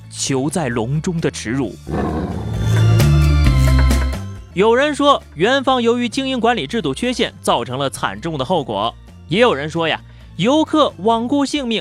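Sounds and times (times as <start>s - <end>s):
speech: 0.2s - 2.4s, 4.6s - 11.7s
tiger roaring: 1.8s - 3.2s.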